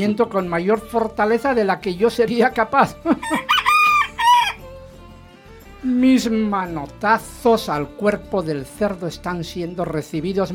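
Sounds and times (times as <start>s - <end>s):
speech: 0.0s - 3.5s, 5.8s - 10.5s
rooster crowing: 3.2s - 4.6s.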